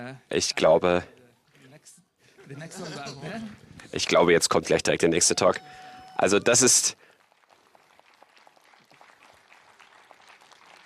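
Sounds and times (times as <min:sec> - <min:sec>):
speech: 0:00.0 - 0:01.1, 0:02.5 - 0:07.0
audience applause: 0:06.2 - 0:10.8.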